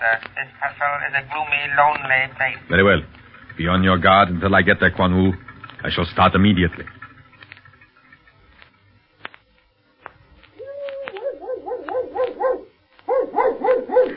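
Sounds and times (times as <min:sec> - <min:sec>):
speech: 0:00.0 - 0:07.0
dog barking: 0:11.2 - 0:14.1.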